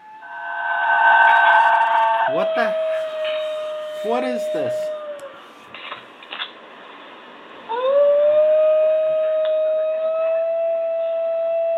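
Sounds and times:
New Guinea singing dog howling: 0.0s - 5.4s, 7.7s - 11.7s
speech: 2.4s - 3.4s, 4.0s - 5.0s.

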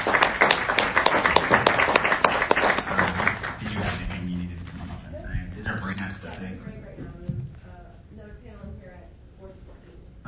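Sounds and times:
crowd applause: 0.0s - 4.5s.

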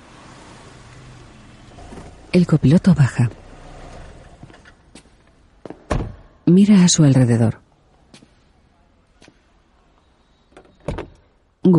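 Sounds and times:
car climbing a parking garage level and parking: 0.0s - 6.4s
speech: 2.3s - 3.4s, 6.5s - 7.6s.

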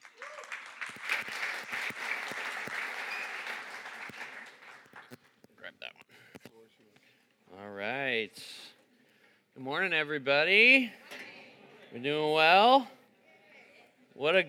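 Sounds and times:
audience applause welcoming a speaker at a gathering: 0.0s - 5.2s
speech: 9.7s - 11.0s, 11.9s - 13.0s, 14.2s - 14.4s.

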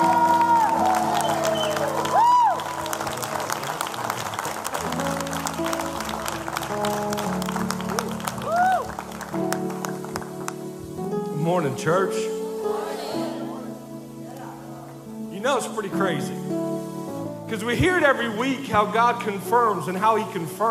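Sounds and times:
whoops and cheers: 0.0s - 3.3s, 8.0s - 9.2s
crowd voices: 0.0s - 11.0s, 12.4s - 15.2s
church congregation clapping to welcome a preacher at a Sunday service: 0.0s - 11.2s
speech: 11.8s - 12.3s, 15.8s - 16.4s, 17.5s - 20.6s.

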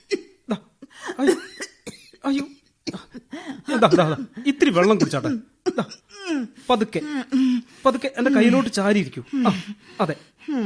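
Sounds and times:
man coughing in a Malayalam radio drama: 0.0s - 7.6s
speech: 0.5s - 1.4s, 3.8s - 6.0s, 6.7s - 10.6s.

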